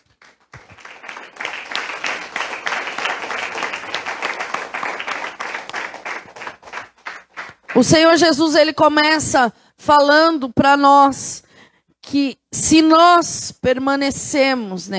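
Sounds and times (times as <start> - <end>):
audience applauding: 0.0 - 8.1
speech: 7.8 - 11.4, 12.1 - 14.9.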